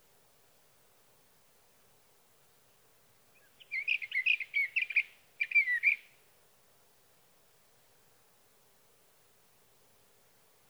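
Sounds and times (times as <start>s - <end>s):
sage thrasher song: 3.4s - 6.1s.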